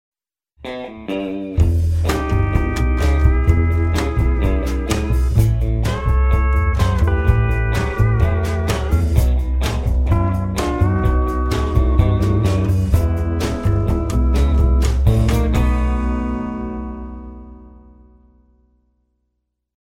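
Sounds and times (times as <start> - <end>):
country rockabilly ringtone: 1.9 - 17.4.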